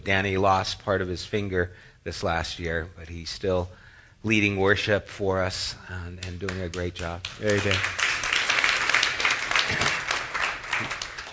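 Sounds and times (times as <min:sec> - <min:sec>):
speech: 0:00.0 - 0:08.0
audience clapping: 0:06.2 - 0:11.3.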